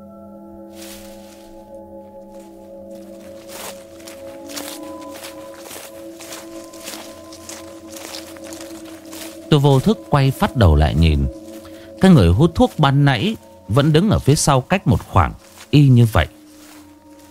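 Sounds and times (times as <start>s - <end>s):
steady low humming drone: 0.0s - 14.6s
crunchy footsteps shuffling on dry leaves: 0.6s - 17.2s
speech: 9.5s - 11.4s, 12.0s - 16.4s.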